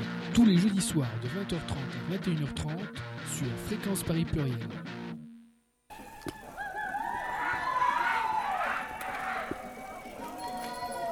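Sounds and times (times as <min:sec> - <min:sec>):
speech: 0:00.4 - 0:05.0
bicycle bells at a cycling demonstration: 0:07.0 - 0:11.1.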